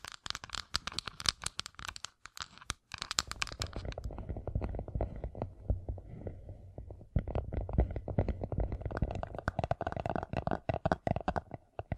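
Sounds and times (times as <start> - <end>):
gem-covered fingertips tapping and scratching: 0.0 - 6.0, 6.8 - 11.9.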